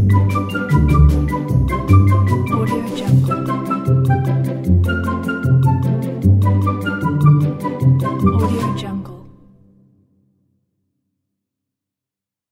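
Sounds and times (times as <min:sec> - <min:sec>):
merry childish pizzicato strings: 0:00.0 - 0:09.4.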